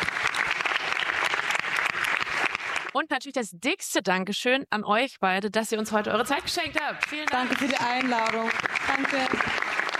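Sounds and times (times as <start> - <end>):
audience applause: 0.0 - 3.0, 6.8 - 9.9
speech: 3.0 - 9.6.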